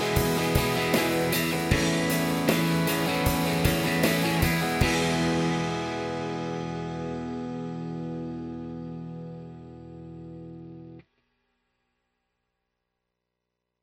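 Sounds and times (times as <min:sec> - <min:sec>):
guitar: 0:00.0 - 0:11.1.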